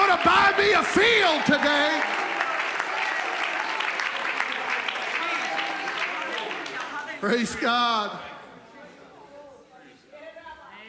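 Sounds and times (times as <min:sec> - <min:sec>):
audience clapping hands: 0:00.0 - 0:07.7
speech: 0:00.1 - 0:02.1, 0:07.2 - 0:08.3.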